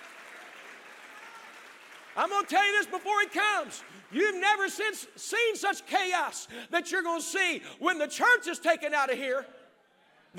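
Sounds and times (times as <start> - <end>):
audience clapping hands: 0.0 - 5.2
speech: 2.2 - 9.6.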